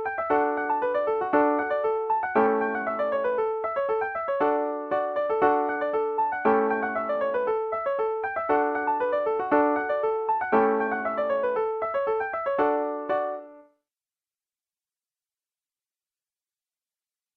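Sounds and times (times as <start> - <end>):
piano piece at 115 bpm: 0.0 - 13.7.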